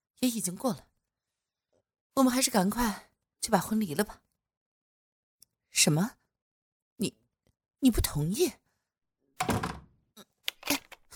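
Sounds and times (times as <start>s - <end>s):
speech: 0.2s - 0.9s, 2.2s - 4.2s, 5.8s - 6.2s, 7.0s - 7.2s, 7.8s - 8.6s
heavy wooden door shutting: 9.4s - 10.0s
door latch and lock clattering: 9.4s - 10.9s.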